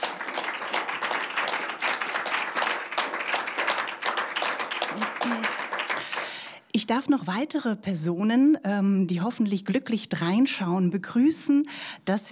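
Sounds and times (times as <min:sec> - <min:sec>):
audience applause: 0:00.0 - 0:06.5
speech: 0:06.8 - 0:12.3.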